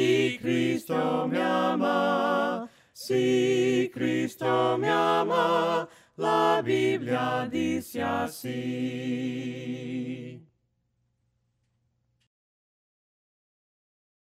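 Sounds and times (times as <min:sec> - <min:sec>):
voices singing hymns a cappella: 0:00.0 - 0:10.5.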